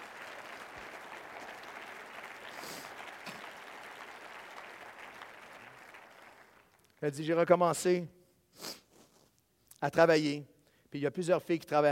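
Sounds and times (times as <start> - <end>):
audience applauding in church: 0.0 - 7.0
speech: 7.0 - 8.7, 9.8 - 11.9.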